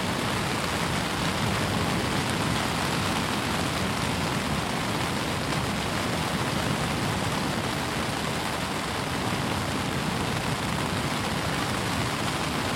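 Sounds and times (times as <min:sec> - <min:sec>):
rain: 0:00.0 - 0:12.7.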